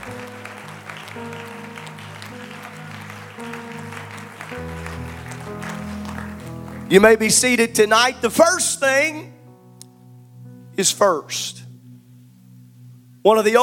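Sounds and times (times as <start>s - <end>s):
audience clapping: 0.0s - 8.2s
speech: 1.2s - 1.5s, 6.9s - 9.3s, 10.8s - 11.6s, 13.2s - 13.6s.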